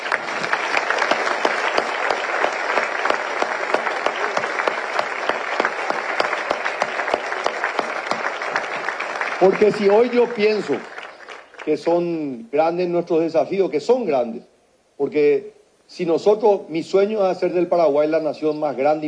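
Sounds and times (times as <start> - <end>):
crowd applauding: 0.0 - 11.8
speech: 9.4 - 10.9, 11.7 - 19.0.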